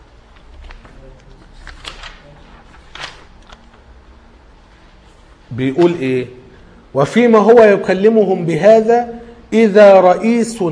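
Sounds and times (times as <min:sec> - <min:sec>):
low noise: 0:00.0 - 0:10.7
Bible pages rustling as they are turned: 0:00.2 - 0:03.9
speech: 0:05.5 - 0:10.7.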